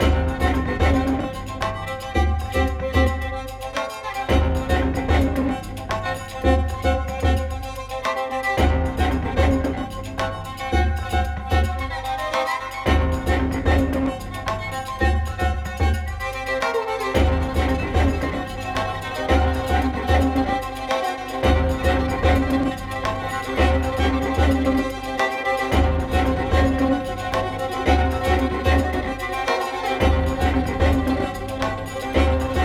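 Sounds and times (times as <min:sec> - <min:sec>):
combat music loop: 0:00.0 - 0:32.6.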